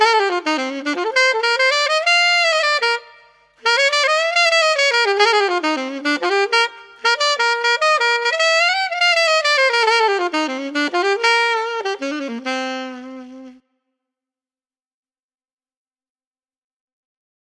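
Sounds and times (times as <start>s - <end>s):
jazz metal alto saxophone: 0.0s - 13.8s.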